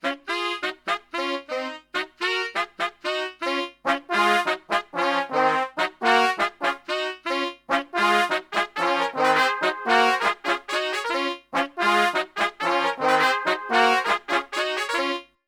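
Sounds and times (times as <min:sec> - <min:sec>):
Brazilian brass section lick: 0:00.0 - 0:15.4.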